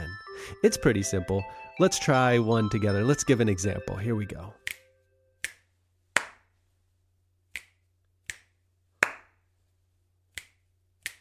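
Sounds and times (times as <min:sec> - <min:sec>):
speech: 0:00.5 - 0:04.6
crisp finger snaps: 0:04.6 - 0:06.4, 0:07.5 - 0:09.3, 0:10.3 - 0:11.1
fuller hand claps: 0:06.2 - 0:06.5, 0:07.6 - 0:09.4.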